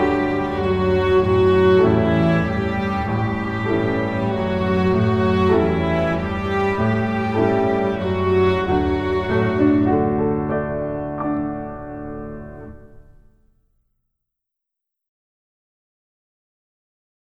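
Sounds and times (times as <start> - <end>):
violin barcarolle: 0.0 - 12.0.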